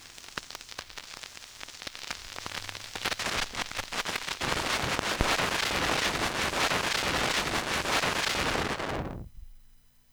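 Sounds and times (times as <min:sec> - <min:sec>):
vinyl crackle: 0:00.0 - 0:09.7.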